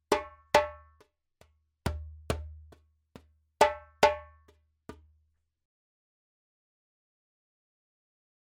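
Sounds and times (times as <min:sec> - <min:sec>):
djembe drumming: 0:00.0 - 0:00.9, 0:01.9 - 0:02.8, 0:03.6 - 0:04.5.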